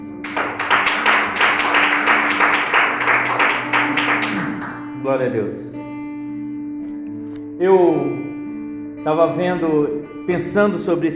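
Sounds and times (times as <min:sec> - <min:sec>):
audience applause: 0:00.2 - 0:04.8
speech: 0:05.0 - 0:05.8, 0:07.6 - 0:08.2, 0:09.0 - 0:11.1.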